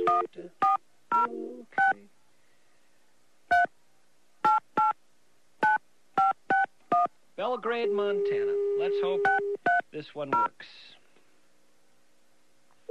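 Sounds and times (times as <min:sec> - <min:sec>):
telephone number being dialed, touch tones: 0:00.0 - 0:02.0, 0:04.4 - 0:05.0, 0:05.6 - 0:07.1, 0:07.9 - 0:10.5
speech: 0:07.4 - 0:11.0.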